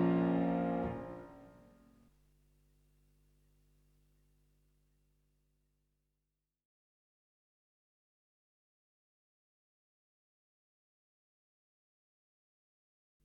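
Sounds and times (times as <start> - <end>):
fast piano sonata movement: 0.0 - 1.9.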